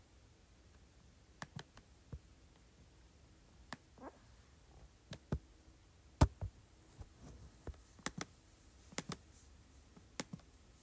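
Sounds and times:
faint low hum: 0.0s - 10.8s
keyboard clicks and typing: 1.4s - 1.8s, 8.0s - 8.3s, 9.0s - 9.2s.

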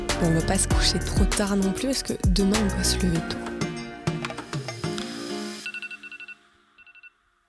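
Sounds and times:
speech: 0.2s - 3.5s
alarm clock bright electronic melody: 5.7s - 7.4s.

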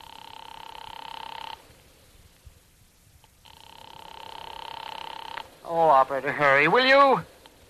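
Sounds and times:
telephone ringing over the line: 0.0s - 1.6s, 3.4s - 5.4s
speech: 5.7s - 7.3s.

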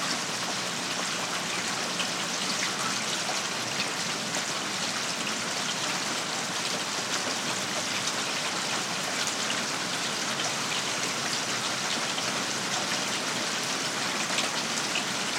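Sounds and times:
heavy rain pouring outside a home: 0.0s - 15.3s
water rushing through gutters and downspouts: 0.0s - 15.3s.

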